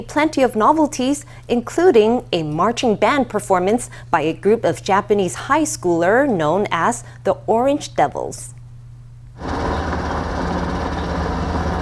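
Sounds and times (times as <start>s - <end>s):
speech: 0.0s - 8.6s
military helicopters flying overhead: 9.4s - 11.8s.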